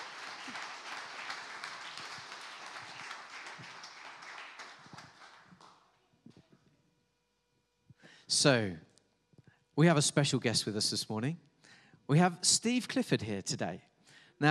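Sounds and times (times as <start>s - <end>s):
round of applause: 0.0s - 6.0s
speech: 8.3s - 8.9s, 9.8s - 11.5s, 12.1s - 14.4s.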